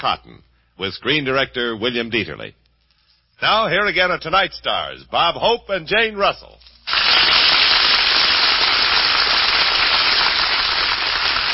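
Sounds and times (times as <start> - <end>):
speech: 0.0 - 2.6, 3.4 - 6.7
audience applause: 6.9 - 11.5.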